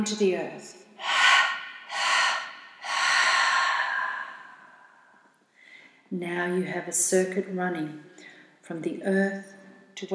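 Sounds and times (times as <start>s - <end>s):
speech: 0.0s - 1.1s, 6.1s - 10.1s
deep breathing during a guided chakra meditation: 1.0s - 6.1s.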